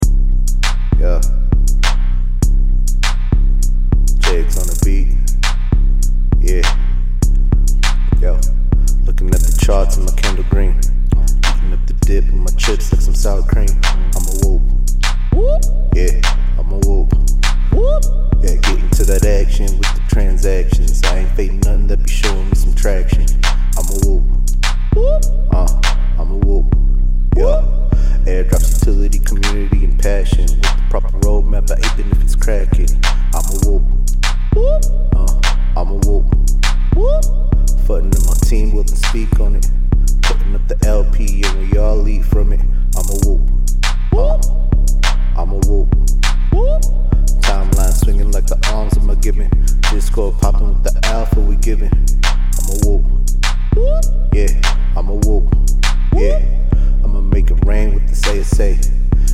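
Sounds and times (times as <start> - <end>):
music beat: 0.0 - 59.3.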